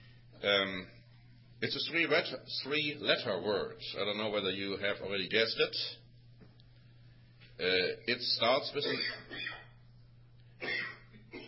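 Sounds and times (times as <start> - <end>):
speech: 0.4 - 1.0, 1.6 - 6.0, 7.6 - 9.5
man coughing during a church talk: 8.8 - 9.7, 10.6 - 11.4.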